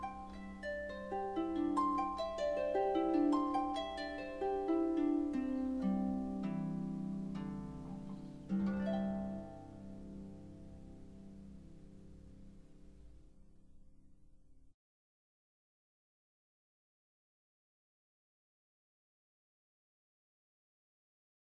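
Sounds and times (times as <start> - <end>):
instrumental harp praise music: 0.0 - 13.3.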